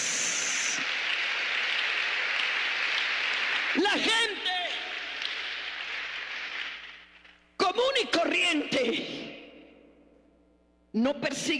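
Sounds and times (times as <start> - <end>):
audience applause: 0.0 - 7.3
speech: 3.8 - 4.4, 8.0 - 9.4, 11.0 - 11.5.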